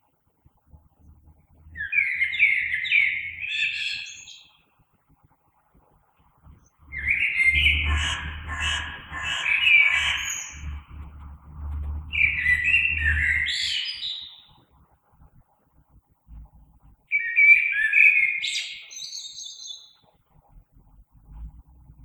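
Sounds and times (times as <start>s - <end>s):
low humming rumble: 0.6s - 1.9s, 5.8s - 13.6s, 14.7s - 17.1s, 20.4s - 22.0s
common blackbird singing: 1.0s - 4.6s, 6.5s - 14.6s, 17.1s - 20.0s.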